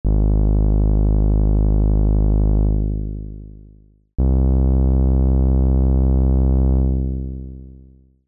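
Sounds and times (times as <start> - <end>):
bass: 0.0 - 8.2.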